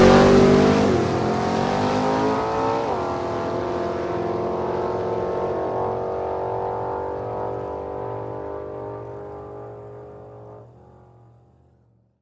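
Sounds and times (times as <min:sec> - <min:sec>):
dragster engine revving: 0:00.0 - 0:06.0
two drag cars driving away: 0:00.0 - 0:11.6.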